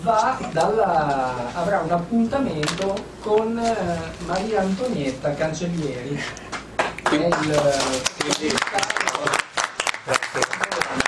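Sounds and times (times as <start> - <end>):
speech: 0.0 - 6.5, 7.1 - 9.5
applause: 6.8 - 11.0.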